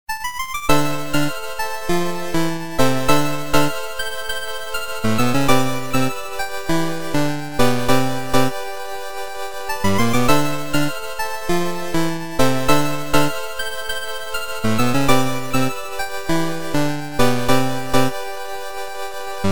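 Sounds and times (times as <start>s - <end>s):
8-bit chiptune: 0.7s - 3.9s, 5.0s - 8.6s, 9.8s - 13.5s, 14.6s - 18.2s.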